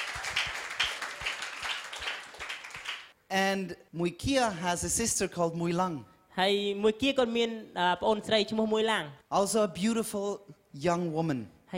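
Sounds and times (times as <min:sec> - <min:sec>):
crowd applauding: 0:00.0 - 0:03.1
speech: 0:03.3 - 0:11.7.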